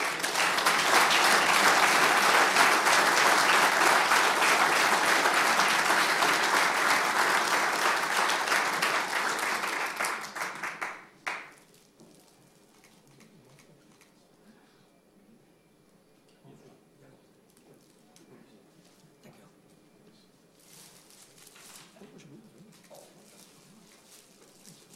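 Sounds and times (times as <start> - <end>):
applause from a municipal council: 0.0 - 11.7.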